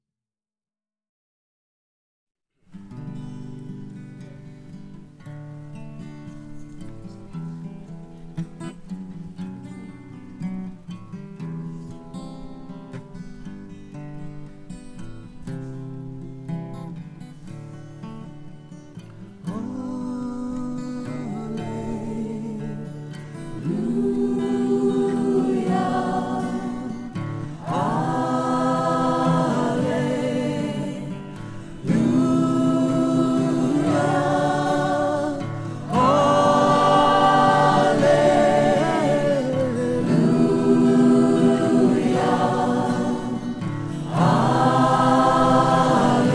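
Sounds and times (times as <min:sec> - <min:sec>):
choir singing: 0:21.0 - 0:46.3.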